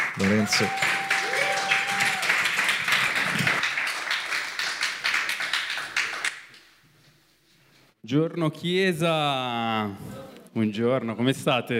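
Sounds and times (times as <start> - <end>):
audience applause welcoming the speaker: 0.0 - 6.4
speech: 0.2 - 1.0, 8.1 - 11.7.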